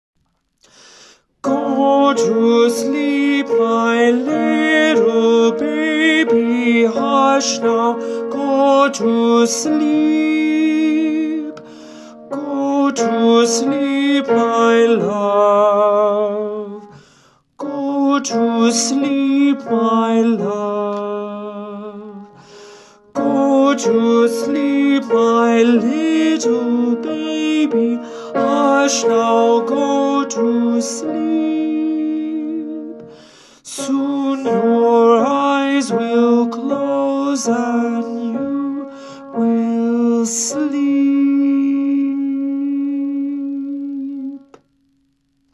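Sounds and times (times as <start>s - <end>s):
solo piano lullaby: 1.4s - 17.0s, 17.6s - 22.4s, 23.2s - 44.4s.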